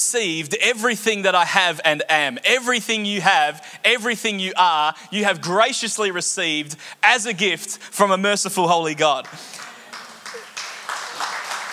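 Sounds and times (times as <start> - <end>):
speech: 0.1 - 9.7
audience clapping: 9.2 - 11.7.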